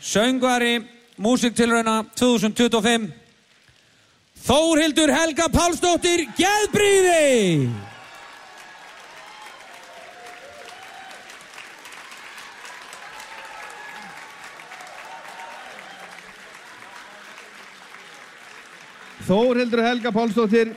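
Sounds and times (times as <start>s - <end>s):
speech: 0.0s - 3.2s, 4.4s - 7.9s, 19.3s - 20.7s
crowd applause for a singer at the Músíktilraunir 2025 band contest: 5.4s - 20.7s.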